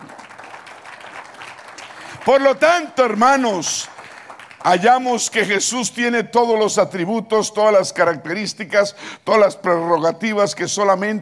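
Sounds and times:
audience applause: 0:00.0 - 0:05.5
speech: 0:02.2 - 0:03.9, 0:04.6 - 0:11.2.

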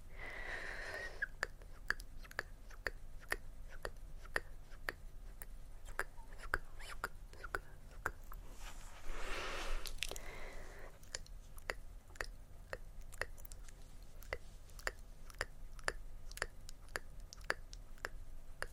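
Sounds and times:
low constant hum: 0:00.0 - 0:18.7
mouth clicks and smacks: 0:01.2 - 0:08.4, 0:09.8 - 0:18.7.

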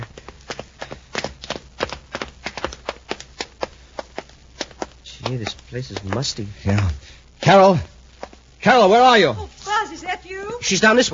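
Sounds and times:
footsteps on basement stairs: 0:00.0 - 0:08.4
speech: 0:05.3 - 0:07.9, 0:08.6 - 0:11.1.

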